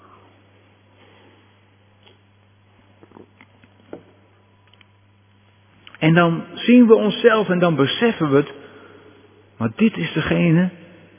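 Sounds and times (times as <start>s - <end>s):
person sipping water: 1.9s - 3.7s
speech: 6.0s - 8.6s, 9.6s - 10.8s.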